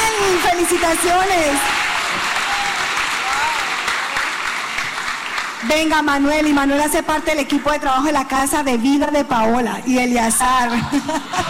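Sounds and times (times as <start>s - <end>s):
audience applause: 0.0s - 6.0s
speech: 0.7s - 2.4s, 5.6s - 11.4s.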